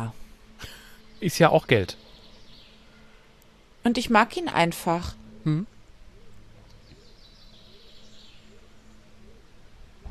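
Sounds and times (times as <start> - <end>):
speech: 0.0 - 2.0, 3.8 - 5.7
faint birds chirping: 0.0 - 10.0.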